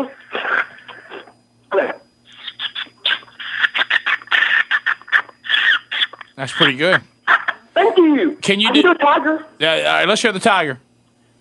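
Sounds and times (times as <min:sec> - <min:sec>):
speech: 0:00.0 - 0:00.3, 0:06.4 - 0:07.1, 0:08.0 - 0:10.8
person imitating a finch call: 0:02.3 - 0:06.3.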